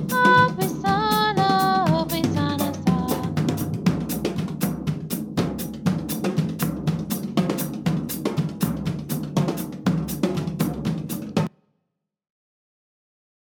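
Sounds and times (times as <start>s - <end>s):
vocals: 0.0s - 4.2s
drums: 0.0s - 11.5s.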